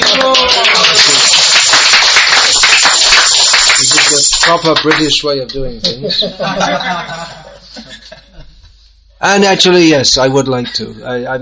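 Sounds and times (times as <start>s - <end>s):
audience clapping: 0.0s - 5.2s
speech: 4.5s - 7.9s, 9.2s - 11.3s
laughter: 5.9s - 8.7s.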